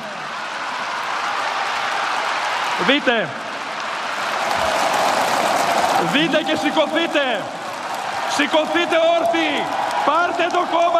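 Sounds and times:
crowd applauding at a rally: 0.0s - 10.9s
speech: 2.8s - 3.4s, 6.0s - 7.6s, 8.4s - 10.9s.

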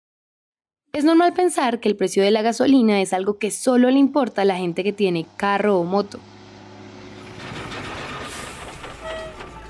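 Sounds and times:
speech: 1.0s - 6.3s
metro train running on rails: 4.5s - 9.6s
metallic squeals: 7.2s - 9.6s.

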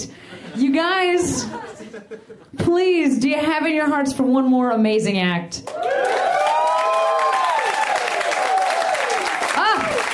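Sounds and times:
speech: 0.0s - 6.2s
laughter: 0.2s - 2.6s
crowd clapping: 5.6s - 10.1s
people whooping and cheering: 5.7s - 10.1s.

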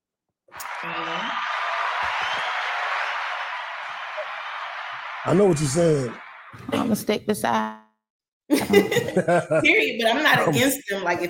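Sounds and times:
round of applause: 0.6s - 7.0s
laughter: 0.6s - 7.4s, 8.5s - 10.7s
speech: 0.8s - 2.6s, 5.2s - 7.8s, 8.5s - 11.2s.

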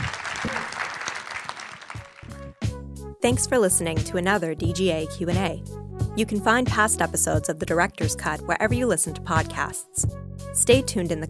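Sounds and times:
crowd clapping: 0.0s - 2.4s
speech: 3.2s - 11.2s.

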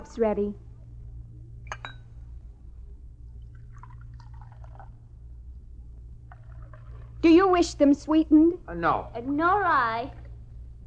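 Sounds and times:
speech: 0.0s - 0.7s, 7.4s - 10.2s
steady low hum: 0.0s - 10.8s
metallic clink: 1.7s - 2.1s
coffee running from brass urn spigot into a cup: 3.4s - 5.0s.

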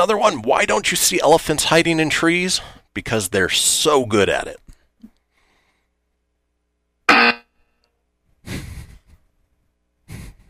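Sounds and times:
speech: 0.0s - 5.1s
buzzer sound effect: 7.1s - 7.5s.

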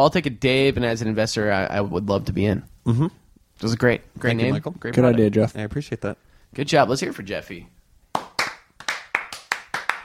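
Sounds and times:
speech: 0.0s - 7.8s
applause, hands clapping: 8.1s - 10.0s.

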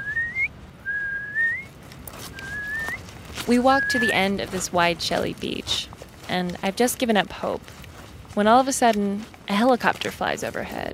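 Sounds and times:
person whistling an imitation of a piping plover call: 0.0s - 1.7s, 2.4s - 3.0s
speech: 3.5s - 7.8s, 8.4s - 10.9s.

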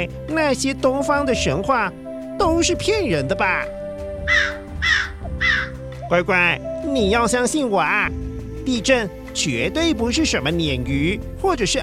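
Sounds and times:
speech: 0.0s - 4.5s, 6.1s - 11.8s
northwestern crow cawing: 4.2s - 5.9s.

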